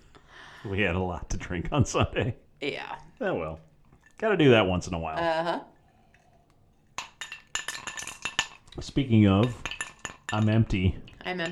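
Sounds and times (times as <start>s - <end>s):
speech: 0.6s - 5.7s, 8.8s - 9.7s, 10.3s - 11.5s
whiskey glasses clinking: 3.0s - 5.0s, 5.7s - 11.5s.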